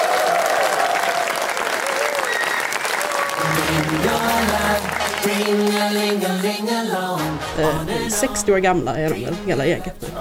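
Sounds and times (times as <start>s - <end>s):
audience applause: 0.0s - 6.6s
faint whistles: 2.2s - 3.0s
speech: 5.2s - 10.1s.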